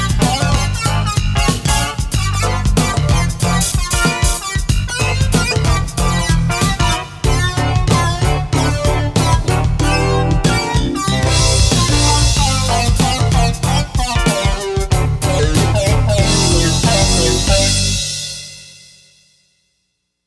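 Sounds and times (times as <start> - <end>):
remix on a sound module: 0.0 - 18.2.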